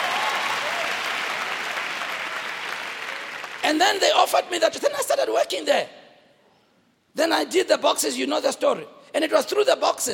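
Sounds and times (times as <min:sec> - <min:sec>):
audience clapping in a church: 0:00.0 - 0:03.8
speech: 0:03.7 - 0:06.0, 0:07.2 - 0:10.1.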